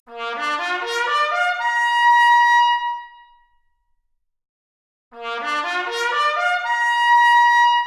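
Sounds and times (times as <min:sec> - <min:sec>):
trumpet arpeggio: 0:00.2 - 0:01.9, 0:05.2 - 0:07.7.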